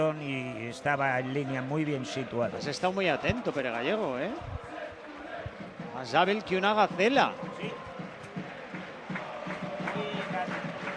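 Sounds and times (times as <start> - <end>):
speech: 0.0 - 4.7, 6.0 - 7.9
football crowd chanting and cheering at a Hércules versus San Andreu match: 0.0 - 10.9.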